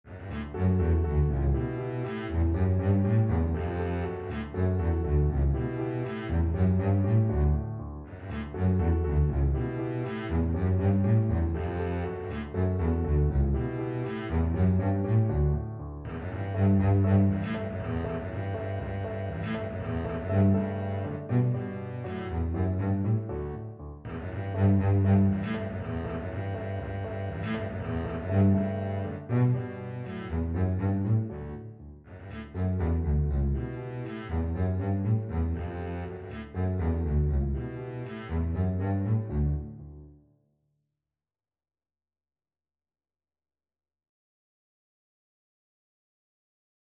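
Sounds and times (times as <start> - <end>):
double bass playing an ecossaise: 0.1 - 40.1.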